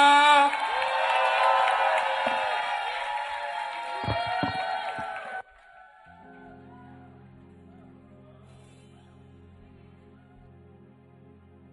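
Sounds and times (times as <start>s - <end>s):
audience clapping: 0.0s - 6.8s
audience cheering: 0.0s - 8.4s.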